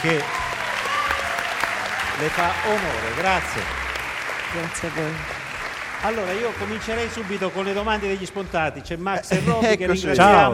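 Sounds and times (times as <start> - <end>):
speech: 0.0 - 0.4, 2.2 - 3.8, 4.5 - 10.5
audience applause: 0.0 - 8.4
laughter: 9.3 - 10.5.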